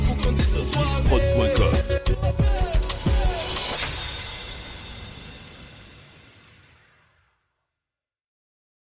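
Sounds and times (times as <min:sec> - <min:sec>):
French urban music medley: 0:00.0 - 0:06.9.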